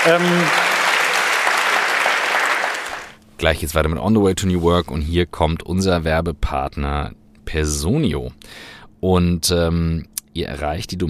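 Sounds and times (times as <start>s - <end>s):
speech: 0.0s - 0.6s, 3.4s - 11.0s
audience applause: 0.0s - 3.2s.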